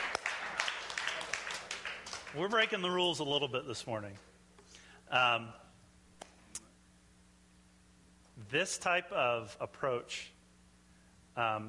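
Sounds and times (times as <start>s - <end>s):
audience applause: 0.0s - 2.7s
speech: 2.3s - 4.3s, 5.1s - 5.6s, 8.4s - 10.4s, 11.4s - 11.6s.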